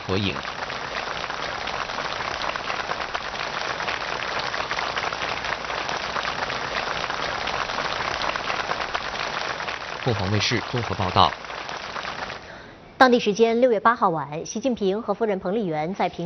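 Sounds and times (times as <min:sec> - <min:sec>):
warm applause from escorts and students: 0:00.0 - 0:12.6
speech: 0:00.1 - 0:00.6, 0:10.0 - 0:11.4, 0:13.0 - 0:16.2.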